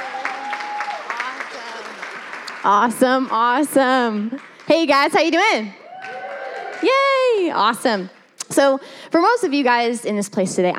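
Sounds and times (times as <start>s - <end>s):
audience applause: 0.0s - 3.6s, 4.3s - 7.3s
speech: 2.6s - 5.8s, 6.8s - 10.7s.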